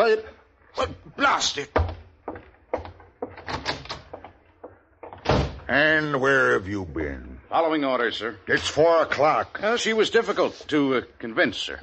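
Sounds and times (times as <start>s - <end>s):
speech: 0.1s - 2.4s, 5.7s - 11.8s
door opening and closing: 1.7s - 4.4s, 5.0s - 5.7s.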